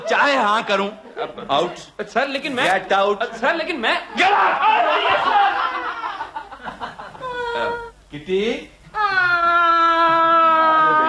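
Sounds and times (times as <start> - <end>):
speech: 0.1 - 5.7, 7.6 - 9.2
laughter: 4.7 - 7.8
girl crying and sobbing: 7.2 - 8.0, 9.0 - 11.0.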